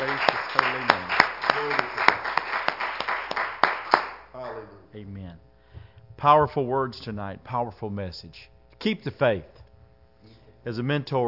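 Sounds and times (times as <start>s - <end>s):
hand clapping during a church service: 0.0s - 4.7s
speech: 6.2s - 9.6s, 10.6s - 11.2s.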